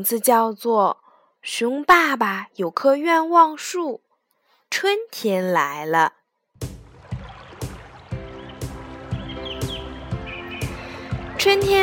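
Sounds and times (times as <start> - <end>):
speech: 0.0 - 4.0, 4.7 - 6.2, 11.4 - 11.8
backing track with soft rhythmic thumps and low tones: 6.6 - 11.8
small birds chirping in trees: 7.1 - 11.8.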